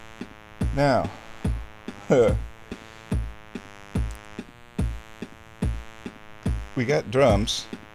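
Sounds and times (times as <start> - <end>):
speech: 0.8 - 1.2, 2.1 - 2.5, 6.8 - 7.7
metronome-like click track: 4.0 - 6.7.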